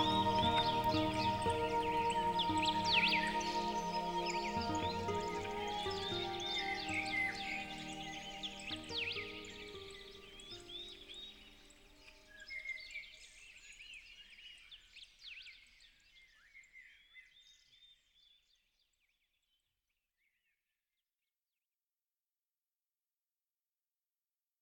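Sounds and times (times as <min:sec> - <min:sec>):
music: 0:00.0 - 0:12.8
tranquil birdsong: 0:00.0 - 0:19.6.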